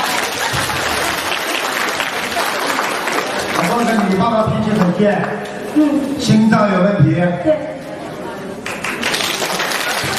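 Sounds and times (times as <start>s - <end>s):
audience applause: 0.0s - 4.2s, 8.6s - 10.1s
speech: 3.8s - 7.7s.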